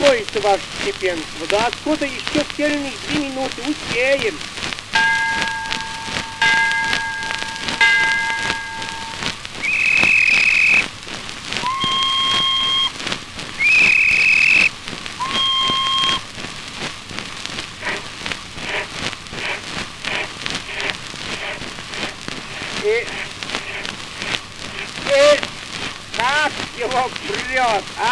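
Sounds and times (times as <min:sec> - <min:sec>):
steam locomotive hissing and rumbling as it pulls away: 0:00.0 - 0:28.1
speech: 0:00.1 - 0:04.6
steam train whistle blasts: 0:05.0 - 0:10.9, 0:11.6 - 0:13.0, 0:13.6 - 0:16.2.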